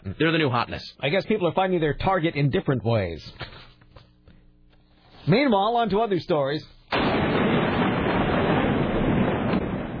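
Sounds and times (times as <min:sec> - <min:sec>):
speech: 0:00.2 - 0:03.7, 0:05.2 - 0:07.4
thunder and lightning sound effect: 0:07.0 - 0:09.9.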